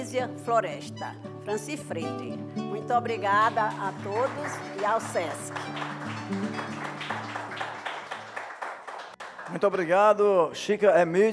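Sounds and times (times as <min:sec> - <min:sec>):
speech: 0:00.1 - 0:07.2, 0:09.5 - 0:11.3
audience applause: 0:03.4 - 0:10.2.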